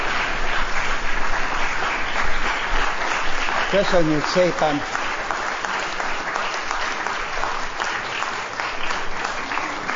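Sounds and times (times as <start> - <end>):
audience applause: 0.0 - 9.9
speech: 3.7 - 5.0.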